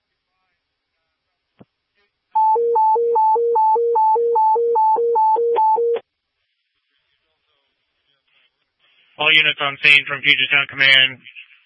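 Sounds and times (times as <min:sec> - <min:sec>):
fire dispatch alert tones: 0:02.4 - 0:06.0
speech: 0:09.3 - 0:11.4.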